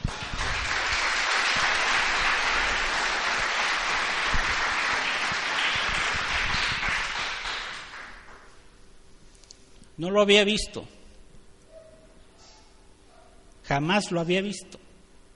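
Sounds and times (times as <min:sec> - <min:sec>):
audience applause: 0:00.0 - 0:08.5
speech: 0:10.0 - 0:11.0, 0:13.7 - 0:14.8.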